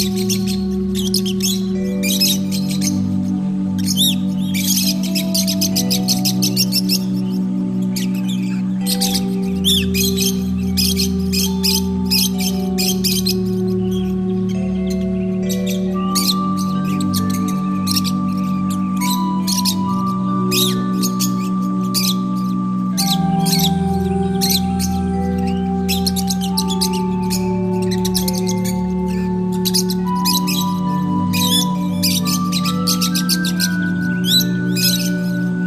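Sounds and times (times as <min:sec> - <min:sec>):
lovebirds chirping and squealing: 0:00.0 - 0:35.6
sustained tonal music: 0:00.0 - 0:35.6.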